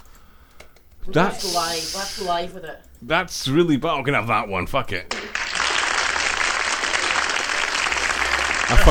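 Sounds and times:
speech: 1.1 - 5.4, 8.7 - 8.9
applause sound effect: 5.1 - 8.9.

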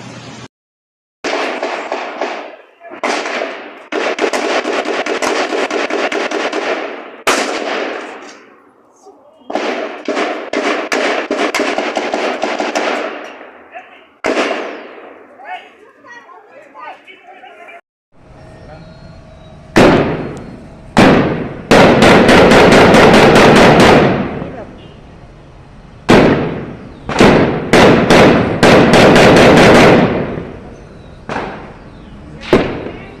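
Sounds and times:
gunfire in police shootout with criminals: 1.2 - 8.6, 9.5 - 13.6, 14.2 - 15.3, 19.8 - 24.6, 26.1 - 30.6, 31.3 - 31.8, 32.4 - 33.1.

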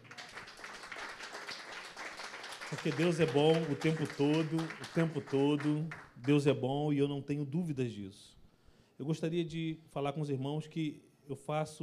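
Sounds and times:
audience applause: 0.0 - 6.4
speech: 2.7 - 8.4, 9.0 - 11.8.

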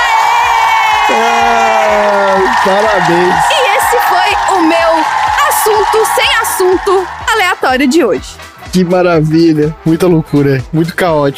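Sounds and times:
applause: 0.0 - 7.9
speech: 1.1 - 1.6, 2.6 - 3.5, 4.6 - 11.3.

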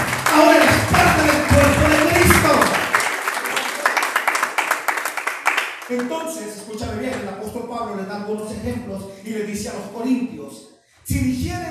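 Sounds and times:
audience applauding: 0.0 - 6.3
speech: 6.2 - 11.6.

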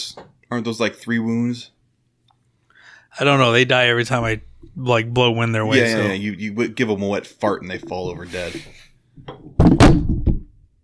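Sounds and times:
speech: 0.2 - 1.8, 3.1 - 10.0
microphone falling over: 9.3 - 10.6.

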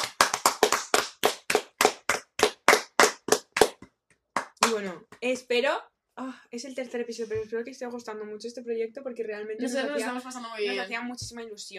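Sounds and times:
applause: 0.0 - 4.8
speech: 4.7 - 11.7.

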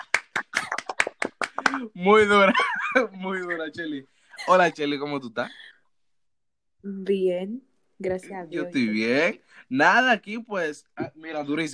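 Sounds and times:
applause: 0.0 - 1.9
laughter: 0.0 - 4.8
speech: 1.8 - 5.7, 6.8 - 11.7.

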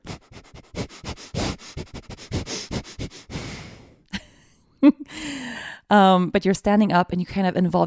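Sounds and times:
forceful exhales through the nose as a bellows-style breathing exercise: 0.0 - 4.0
person sniffing: 0.0 - 4.0
speech: 5.9 - 7.8.

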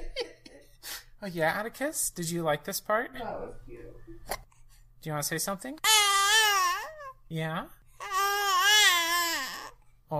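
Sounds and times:
speech: 1.2 - 4.4, 5.0 - 6.0, 7.3 - 8.1
baby squeaking: 5.8 - 7.2, 8.0 - 9.8.

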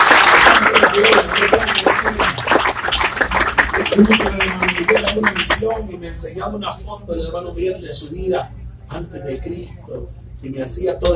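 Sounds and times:
audience applause: 0.0 - 5.9
speech: 4.0 - 4.4, 5.6 - 11.1.

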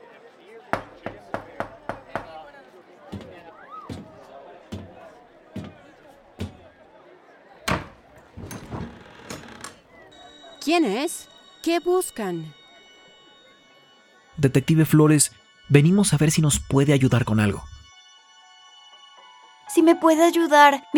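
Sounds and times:
faint voices murmuring: 0.0 - 17.8
knocking on a caravan door: 0.8 - 2.4, 3.1 - 5.0, 5.6 - 5.8, 6.4 - 6.6, 7.7 - 9.0
speech: 10.7 - 12.6, 14.4 - 17.7, 19.8 - 20.9.

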